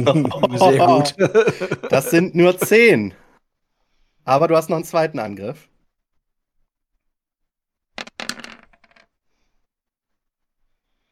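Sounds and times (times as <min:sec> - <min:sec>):
laughter: 0:00.0 - 0:03.0
speech: 0:00.0 - 0:03.2, 0:04.2 - 0:05.7
dice rolling on a hard table: 0:08.0 - 0:09.2.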